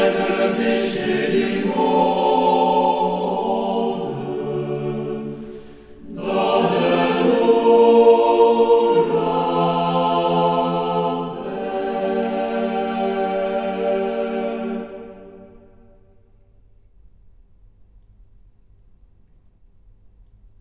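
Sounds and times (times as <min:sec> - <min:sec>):
soprano singing: 0:00.0 - 0:15.5.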